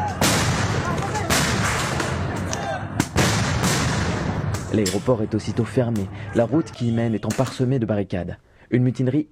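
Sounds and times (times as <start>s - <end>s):
stun grenades exploding at night: 0.2s - 2.3s, 3.0s - 4.8s
speech: 4.7s - 9.3s.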